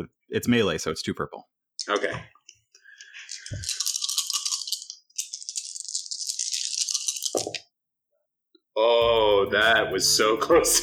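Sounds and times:
speech: 0.0 - 2.3, 3.5 - 3.8, 8.8 - 10.8
dice rolling: 3.1 - 7.6.

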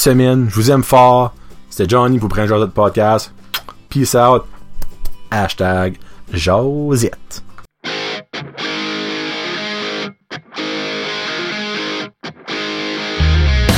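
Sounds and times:
speech: 0.0 - 4.6, 5.3 - 7.5
rock song playing: 7.8 - 13.7.

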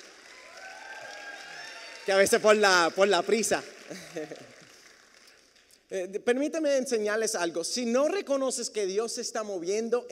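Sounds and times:
audience applause: 0.0 - 5.6
faint voices or cheers: 0.2 - 2.4
speech: 2.1 - 4.6, 5.9 - 10.0
laughter: 3.9 - 4.7.

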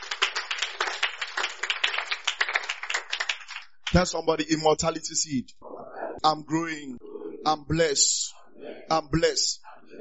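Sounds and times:
crowd clapping: 0.0 - 4.3
speech: 3.9 - 9.6.

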